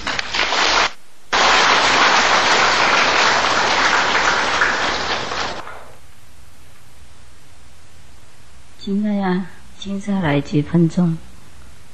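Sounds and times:
audience applause: 0.0 - 6.0
speech: 8.9 - 11.3.

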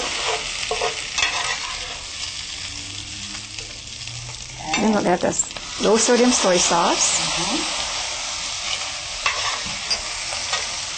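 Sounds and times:
stirring scrapes in a sizzling pan: 0.0 - 2.6, 7.8 - 10.9
food frying in a pan: 0.0 - 10.9
speech: 5.0 - 7.8.

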